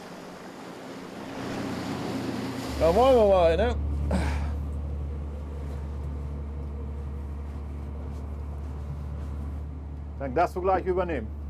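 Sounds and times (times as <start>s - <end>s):
sea waves: 0.0s - 11.4s
wind: 0.0s - 11.4s
speech: 2.8s - 4.3s, 10.2s - 11.4s.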